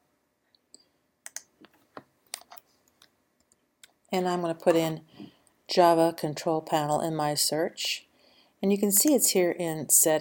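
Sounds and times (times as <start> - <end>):
mouse clicks on a Windows 8 computer: 1.3 - 1.5
speech: 4.1 - 10.2.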